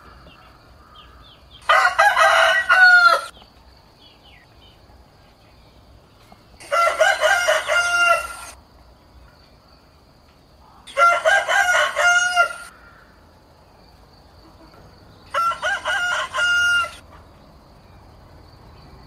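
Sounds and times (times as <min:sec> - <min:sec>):
rooster crowing: 0:00.9 - 0:03.3, 0:06.6 - 0:08.6, 0:10.9 - 0:13.1, 0:15.3 - 0:17.0.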